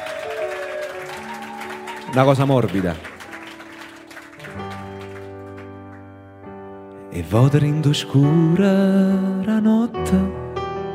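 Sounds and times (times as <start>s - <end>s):
audience applause: 0.0s - 6.2s
speech: 2.1s - 3.1s, 7.2s - 10.4s.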